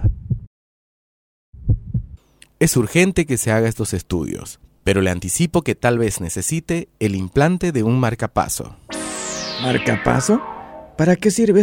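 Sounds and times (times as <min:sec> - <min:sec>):
heartbeat heard during medical examination: 0:00.0 - 0:00.5, 0:01.6 - 0:02.2
speech: 0:02.6 - 0:08.9, 0:09.6 - 0:11.6.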